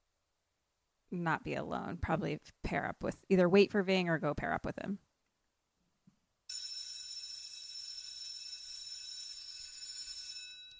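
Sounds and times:
speech: 1.1s - 5.0s
bell ringing: 6.5s - 10.7s.

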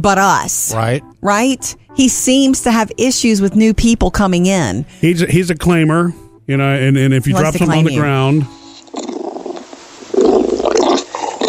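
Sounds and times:
speech: 0.0s - 9.0s
bulldog growling: 8.8s - 11.4s.

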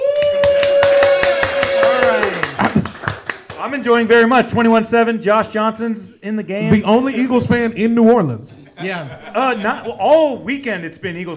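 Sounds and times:
sustained voiced whoop: 0.0s - 2.6s
audience clapping: 0.0s - 4.0s
laughter: 2.2s - 3.2s, 8.5s - 10.4s
speech: 3.7s - 11.3s.

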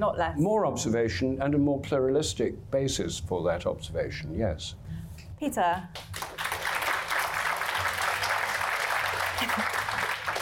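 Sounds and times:
speech: 0.0s - 6.2s
audience applause: 6.0s - 10.4s.

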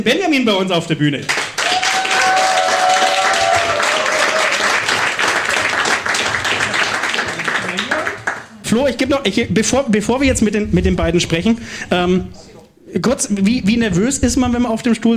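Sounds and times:
speech: 0.0s - 1.4s, 8.7s - 15.1s
audience applause: 1.3s - 8.5s.

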